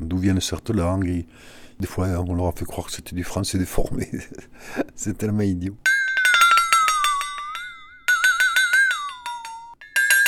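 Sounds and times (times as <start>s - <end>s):
speech: 0.2s - 5.9s
flexatone-like instrument, thin metal blade struck by two balls: 5.9s - 10.2s.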